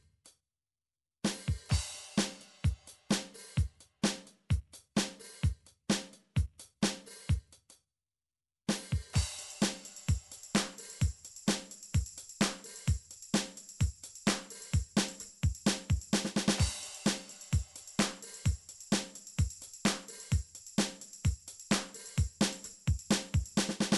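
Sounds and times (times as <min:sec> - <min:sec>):
dance MIDI drum beat: 0:01.3 - 0:07.4, 0:08.7 - 0:23.9.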